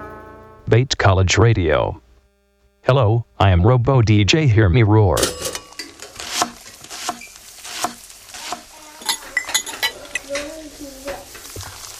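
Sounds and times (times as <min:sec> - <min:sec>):
speech: 0:00.7 - 0:02.0, 0:02.8 - 0:05.5
kitchen dishes and cutlery clinking: 0:05.2 - 0:06.3, 0:09.0 - 0:10.6
scraping and stirring: 0:05.4 - 0:11.9.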